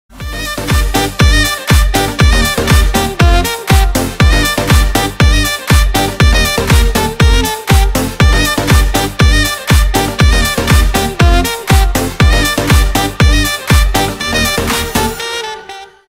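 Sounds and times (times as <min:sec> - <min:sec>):
instrumental remix: 0:00.1 - 0:16.0.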